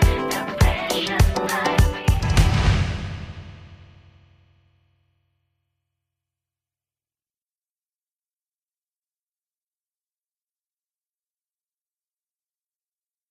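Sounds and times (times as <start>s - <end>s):
Japanese pop singing: 0.0s - 3.4s.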